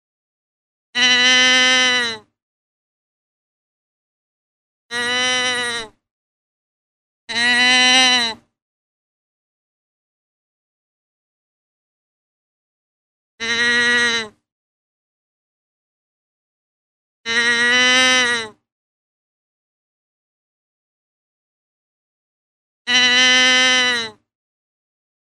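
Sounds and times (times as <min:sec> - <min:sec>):
deer bleating: 0:01.0 - 0:02.2, 0:04.9 - 0:05.9, 0:07.3 - 0:08.4, 0:13.4 - 0:14.4, 0:17.3 - 0:18.5, 0:22.9 - 0:24.2.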